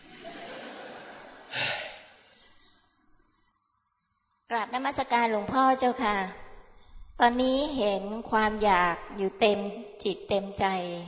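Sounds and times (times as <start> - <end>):
laughter: 0.0 - 1.6
person catching breath after speaking fast: 1.5 - 2.4
speech: 4.6 - 6.4, 7.2 - 11.0.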